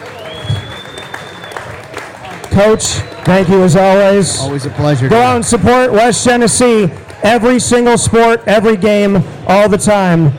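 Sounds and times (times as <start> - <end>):
audience applause: 0.0 - 7.6
speech: 2.6 - 10.3.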